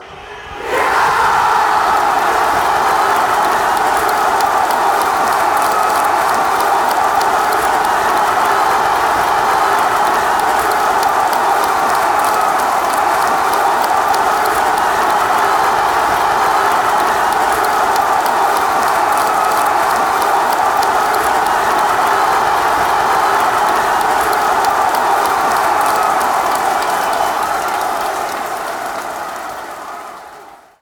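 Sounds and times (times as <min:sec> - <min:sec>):
football fans chanting after a goal: 0:00.0 - 0:30.8.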